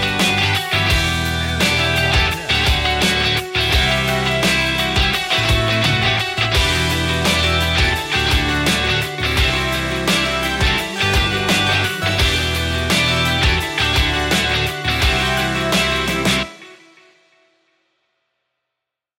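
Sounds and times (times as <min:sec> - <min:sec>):
indie pop rock music: 0:00.0 - 0:17.0.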